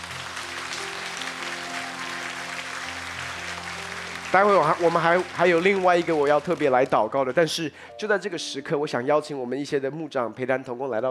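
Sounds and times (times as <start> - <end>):
large crowd applause: 0.0 - 7.2
speech: 4.3 - 11.0.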